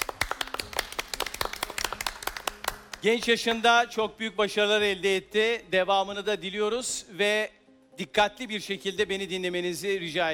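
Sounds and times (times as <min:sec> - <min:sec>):
quiz show contestants applauding: 0:00.0 - 0:03.3
speech: 0:03.0 - 0:10.3.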